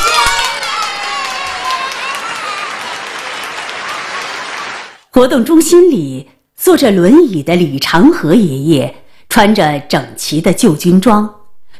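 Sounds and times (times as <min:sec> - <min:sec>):
crowd of children cheering and shouting: 0:00.0 - 0:05.0
applause: 0:00.0 - 0:05.1
speech: 0:05.2 - 0:11.7.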